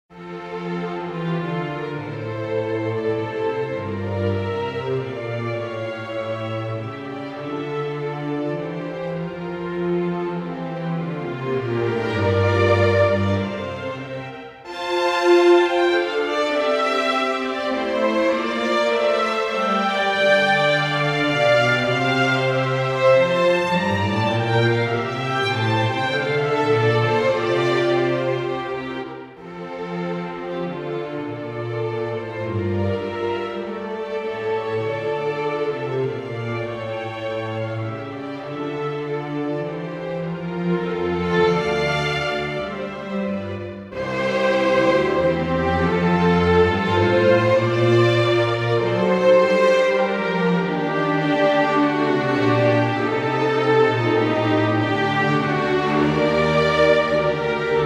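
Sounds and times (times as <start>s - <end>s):
orchestra: 0.1s - 57.8s.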